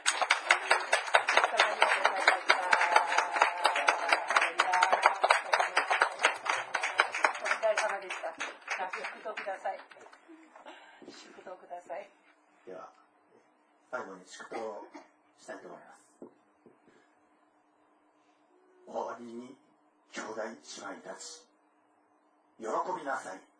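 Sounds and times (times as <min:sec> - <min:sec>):
audience applause: 0:00.0 - 0:10.1
speech: 0:13.9 - 0:16.0, 0:20.4 - 0:21.5, 0:22.6 - 0:23.5.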